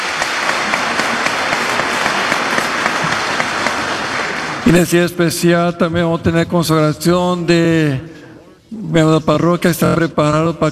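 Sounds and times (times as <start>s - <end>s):
audience applauding: 0.0s - 5.0s
speech: 4.7s - 10.6s.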